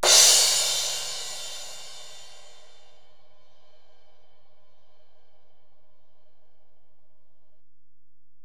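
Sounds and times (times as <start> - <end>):
Alesis DM-PRO drum machine ride cymbal: 0.0 - 2.7.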